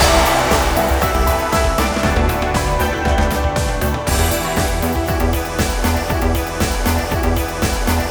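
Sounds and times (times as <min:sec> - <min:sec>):
big win music loop: 0:00.0 - 0:08.0.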